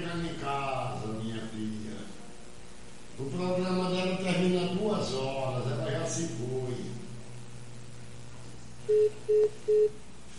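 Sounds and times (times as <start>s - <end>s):
faint hiss: 0.0s - 10.3s
short mid-pitched phone line tone beeps after a dropped call: 8.9s - 10.0s.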